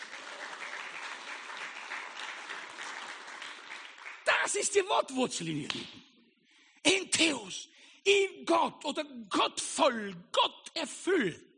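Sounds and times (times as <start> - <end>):
audience clapping: 0.0 - 4.9
speech: 4.5 - 6.1, 7.2 - 11.5.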